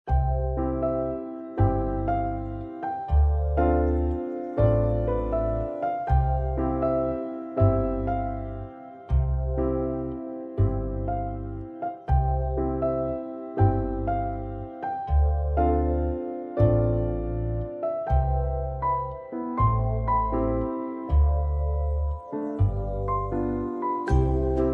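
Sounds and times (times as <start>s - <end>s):
garden music: 0.1s - 24.7s.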